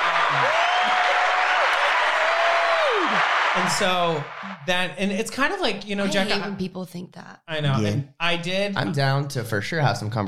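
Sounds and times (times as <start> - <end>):
crowd applause: 0.0 - 4.7
speech: 3.6 - 10.2.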